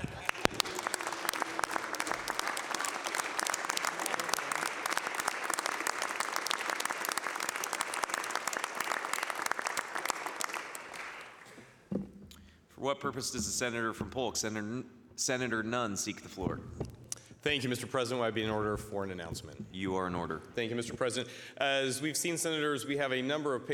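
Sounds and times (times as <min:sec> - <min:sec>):
round of applause: 0:00.0 - 0:11.8
speech: 0:12.8 - 0:16.8, 0:17.4 - 0:23.7.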